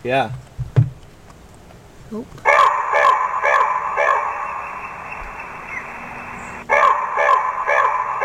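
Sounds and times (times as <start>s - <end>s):
speech: 0.0s - 0.4s, 2.1s - 2.5s
low steady hiss: 0.0s - 2.6s, 3.2s - 6.7s
recorded corvid call from bird device: 2.4s - 8.2s.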